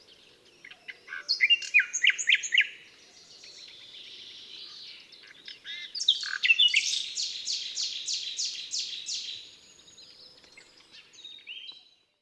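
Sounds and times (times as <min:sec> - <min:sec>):
common nightingale song: 0:00.0 - 0:12.0.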